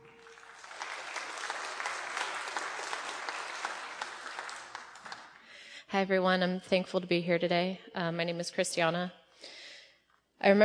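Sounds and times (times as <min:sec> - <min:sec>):
audience applause welcoming a speaker at a church anniversary service: 0:00.0 - 0:05.5
speech: 0:05.9 - 0:09.6, 0:10.4 - 0:10.6.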